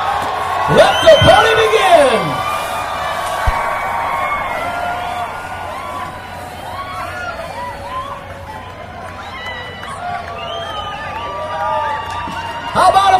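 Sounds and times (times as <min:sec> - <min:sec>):
large crowd cheering and whooping: 0:00.0 - 0:13.1
speech: 0:00.7 - 0:01.6
sharp pop: 0:03.3 - 0:04.1.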